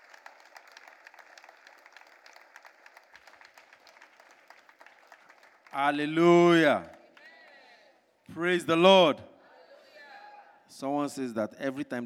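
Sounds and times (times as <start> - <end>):
audience clapping and applauding: 0.0 - 7.7
speech: 5.7 - 7.0, 8.4 - 9.3, 10.8 - 12.0.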